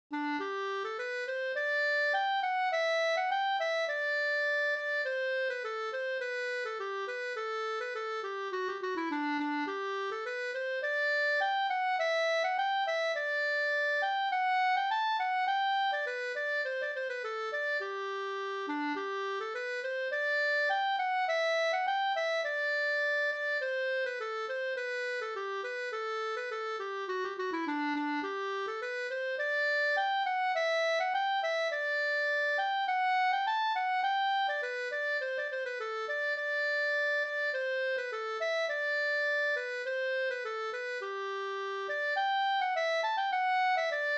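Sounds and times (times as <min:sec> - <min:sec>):
folk walking tune: 0:00.1 - 0:44.1.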